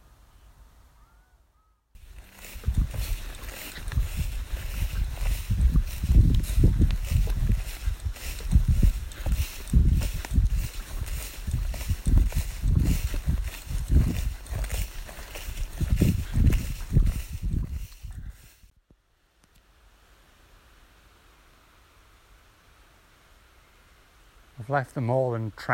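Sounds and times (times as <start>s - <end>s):
footsteps trudging through fields of long grass: 2.0s - 18.7s
speech: 24.7s - 25.7s.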